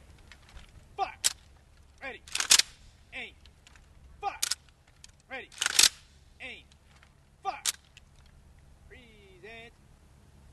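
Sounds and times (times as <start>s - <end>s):
rifle volleys fired by a Marine honor detail at a funeral: 0.2s - 8.3s.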